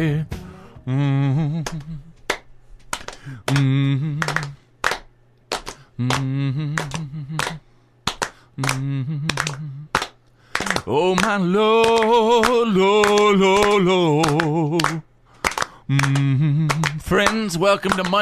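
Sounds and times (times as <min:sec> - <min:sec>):
speech: 0:00.0 - 0:02.1, 0:03.2 - 0:04.6, 0:06.0 - 0:07.7, 0:08.6 - 0:10.0, 0:10.6 - 0:15.1, 0:15.9 - 0:18.2
person vocalizing: 0:00.0 - 0:02.2, 0:03.2 - 0:04.6, 0:06.0 - 0:07.7, 0:08.6 - 0:10.0, 0:15.9 - 0:17.0
hand claps: 0:01.4 - 0:18.2.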